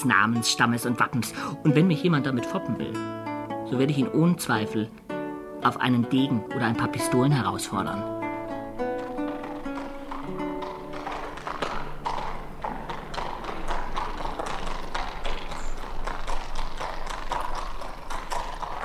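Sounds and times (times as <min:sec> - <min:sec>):
speech: 0:00.0 - 0:05.0, 0:05.6 - 0:08.2
hunter's horse hooves clip-clopping: 0:08.2 - 0:18.8.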